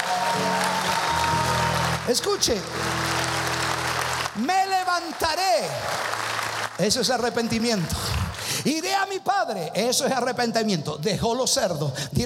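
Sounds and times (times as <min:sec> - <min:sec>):
audience applauding: 0:00.0 - 0:08.7
speech: 0:02.1 - 0:03.2, 0:04.4 - 0:06.2, 0:06.8 - 0:12.2.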